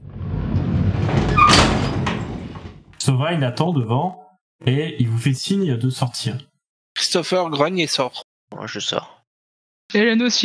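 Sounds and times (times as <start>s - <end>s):
metal shutter being raised: 0.1s - 2.9s
speech: 3.2s - 9.2s, 9.9s - 10.4s.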